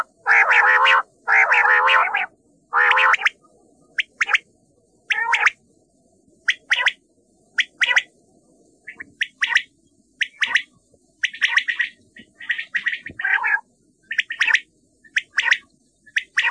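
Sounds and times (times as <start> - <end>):
common quail calling: 0.0 - 3.4, 4.0 - 4.4, 5.1 - 5.6, 6.5 - 7.0, 7.6 - 8.1, 8.9 - 16.4.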